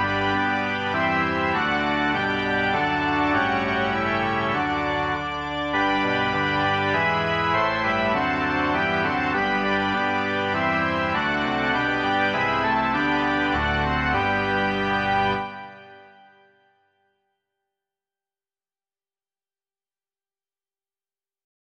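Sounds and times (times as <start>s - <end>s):
organ: 0.0s - 16.6s.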